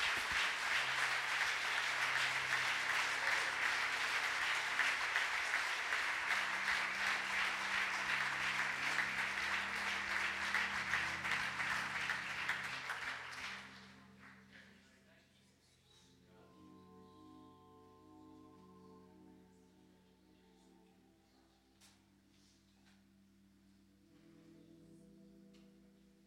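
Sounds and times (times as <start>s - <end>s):
crowd clapping hands: 0.0s - 14.7s.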